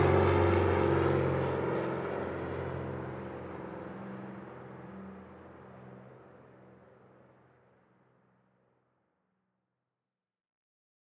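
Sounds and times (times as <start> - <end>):
propeller plane flying by overhead: 0.0 - 8.0.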